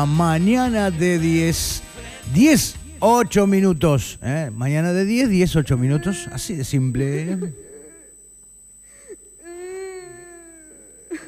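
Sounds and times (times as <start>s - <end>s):
speech: 0.0s - 7.6s
person crying: 5.6s - 8.3s, 9.0s - 11.2s
breathy sounds: 7.2s - 11.2s.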